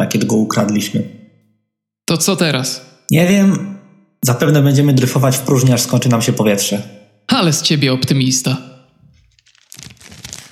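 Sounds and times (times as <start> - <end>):
speech: 0.3 - 1.2, 2.1 - 8.7
energy bar wrapper crinkling as it is unwrapped: 9.0 - 10.4.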